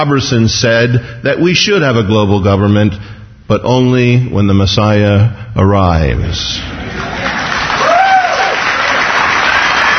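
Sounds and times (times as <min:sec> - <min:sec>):
speech: 0:00.0 - 0:07.4
audience applause: 0:06.9 - 0:09.9
rising whistle or whoop: 0:07.8 - 0:08.6.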